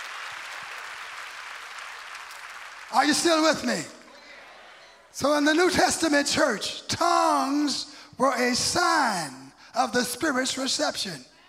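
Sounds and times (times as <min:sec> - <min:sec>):
audience clapping: 0:00.0 - 0:04.3
speech: 0:02.9 - 0:04.0, 0:05.2 - 0:11.3.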